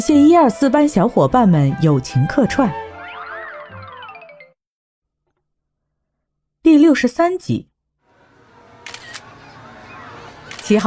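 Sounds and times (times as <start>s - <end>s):
speech: 0.0s - 2.9s, 6.7s - 7.7s, 10.7s - 10.8s
phone camera shutter clicks outside a carousel: 8.8s - 9.3s, 10.5s - 10.8s.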